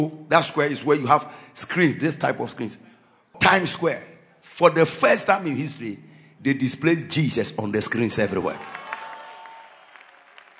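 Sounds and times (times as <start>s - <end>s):
speech: 0.0s - 8.8s
audience clapping: 8.3s - 10.5s.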